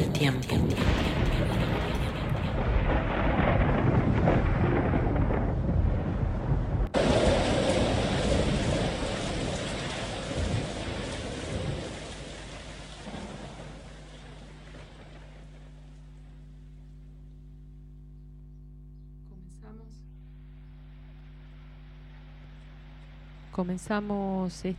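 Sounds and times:
thunder: 0.5 - 15.7
rain: 0.8 - 17.3, 21.0 - 24.7
speech: 23.6 - 24.7.

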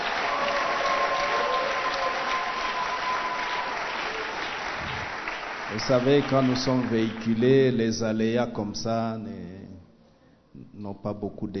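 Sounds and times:
congregation clapping at a church service: 0.0 - 7.8
speech: 5.7 - 9.6, 10.8 - 11.5.

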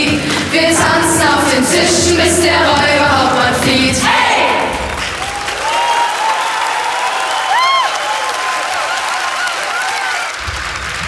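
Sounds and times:
audience applause: 0.1 - 11.0
cheering and whoops: 5.2 - 10.4.

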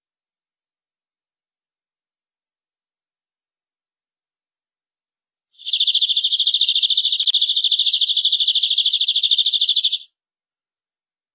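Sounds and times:
canary song: 5.6 - 10.1.

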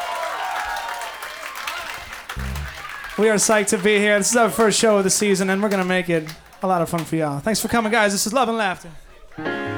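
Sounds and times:
concert audience at The Red Room applauding a band: 0.0 - 7.4
speech: 3.2 - 9.6.

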